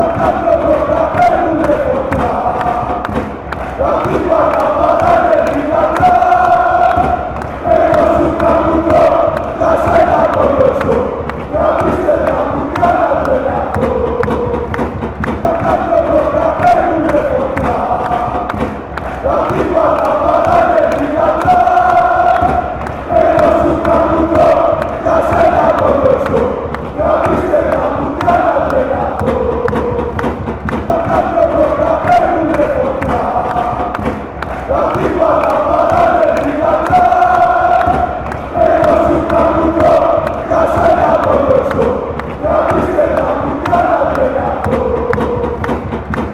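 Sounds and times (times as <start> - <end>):
fans chanting: 0.0 - 46.3.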